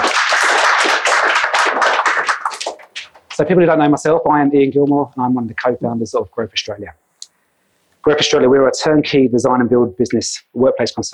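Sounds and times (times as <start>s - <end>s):
crowd applauding: 0.0s - 3.4s
speech: 3.4s - 7.0s, 8.0s - 11.1s.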